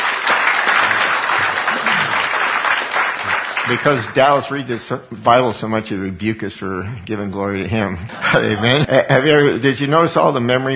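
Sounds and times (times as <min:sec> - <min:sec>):
audience clapping: 0:00.0 - 0:04.7
laughter: 0:00.8 - 0:02.4, 0:07.6 - 0:09.8
speech: 0:03.7 - 0:10.7.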